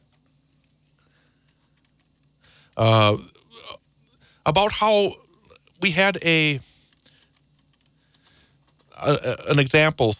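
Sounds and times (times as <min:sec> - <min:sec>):
faint typing on a computer keyboard: 0:01.4 - 0:02.3, 0:06.9 - 0:09.0
speech: 0:02.8 - 0:03.4, 0:04.4 - 0:05.2, 0:05.8 - 0:06.7, 0:09.0 - 0:10.1.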